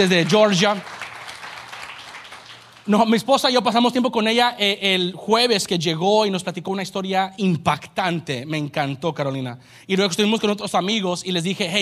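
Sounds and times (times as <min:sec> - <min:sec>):
speech: 0:00.0 - 0:00.9, 0:02.9 - 0:11.8
audience applause: 0:00.0 - 0:03.0.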